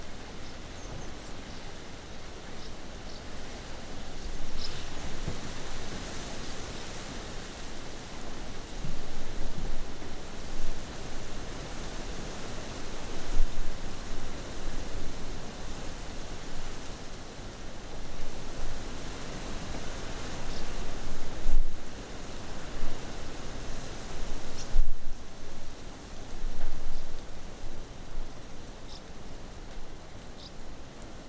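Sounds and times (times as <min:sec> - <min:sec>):
swifts calling: 0:00.0 - 0:05.0, 0:20.4 - 0:20.8, 0:28.6 - 0:29.4, 0:30.0 - 0:30.6
rainstorm wind and heavy rain across water: 0:00.0 - 0:31.2.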